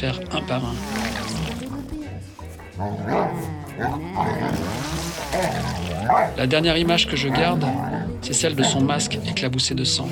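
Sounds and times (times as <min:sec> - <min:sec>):
speech: 0:00.0 - 0:01.6, 0:02.8 - 0:10.1
Doberman dog barking and growling: 0:02.7 - 0:09.6.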